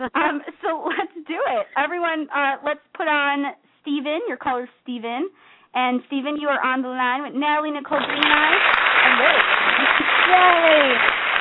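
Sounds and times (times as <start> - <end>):
speech: 0.0 - 11.2
applause on a call-in talk show: 8.0 - 11.3
person cheering: 9.2 - 11.3.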